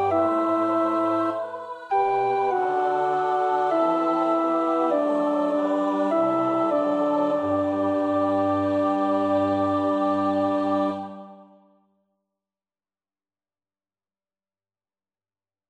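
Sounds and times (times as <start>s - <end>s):
sung psalm: 0.0s - 11.7s.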